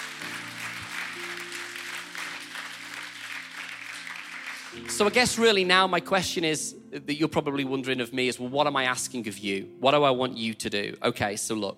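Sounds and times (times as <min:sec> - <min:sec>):
crowd applauding: 0:00.0 - 0:05.6
speech: 0:04.8 - 0:11.7.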